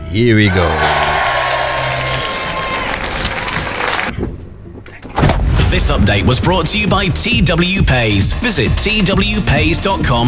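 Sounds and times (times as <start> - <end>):
speech: 0.1 - 1.0, 5.7 - 10.2
cheering: 0.4 - 4.1
crowd applause: 0.5 - 4.1.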